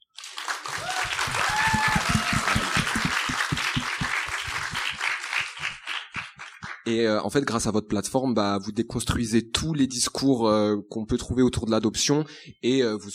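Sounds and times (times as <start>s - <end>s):
audience applause: 0.2s - 6.8s
speech: 6.9s - 13.1s.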